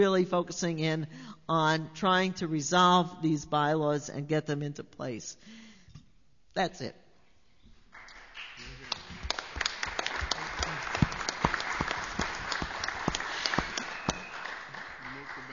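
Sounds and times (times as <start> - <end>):
speech: 0.0 - 5.6, 6.6 - 7.0
audience applause: 7.9 - 15.5.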